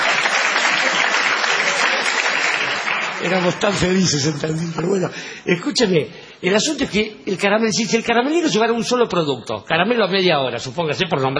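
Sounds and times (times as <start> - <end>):
audience applause: 0.0 - 5.0
speech: 3.2 - 11.3.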